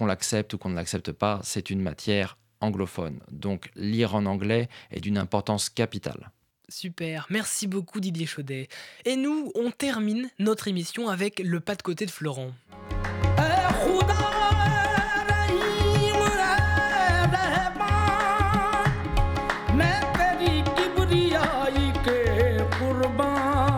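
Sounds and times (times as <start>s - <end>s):
speech: 0.0s - 12.9s
percussion: 11.8s - 23.7s
qawwali singing: 12.8s - 23.7s.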